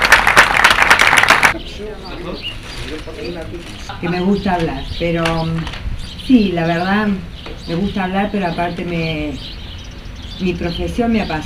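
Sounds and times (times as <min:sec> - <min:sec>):
audience applause: 0:00.0 - 0:01.6
speech: 0:01.8 - 0:09.6, 0:10.4 - 0:11.4.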